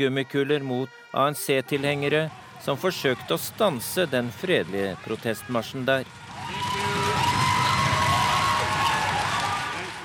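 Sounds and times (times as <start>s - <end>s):
speech: 0.0s - 6.6s
large crowd applauding: 2.4s - 10.0s.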